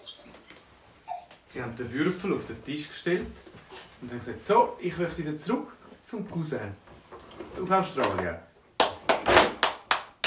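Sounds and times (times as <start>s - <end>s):
speech: 1.5s - 6.9s, 7.6s - 8.5s
hands clapping: 8.0s - 8.2s, 8.8s - 10.2s.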